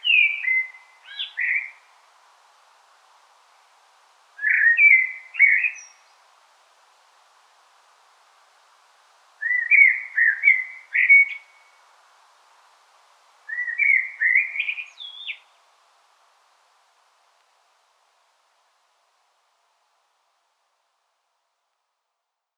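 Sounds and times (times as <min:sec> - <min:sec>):
common blackbird singing: 0:00.0 - 0:01.8, 0:04.4 - 0:06.0, 0:09.4 - 0:11.5, 0:13.5 - 0:15.5.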